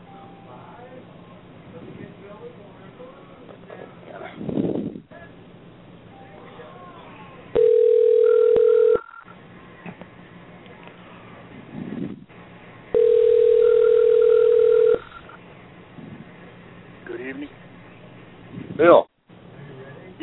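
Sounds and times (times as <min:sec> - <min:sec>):
telephone line tones while a call is placed: 0:07.6 - 0:09.3, 0:13.0 - 0:15.3.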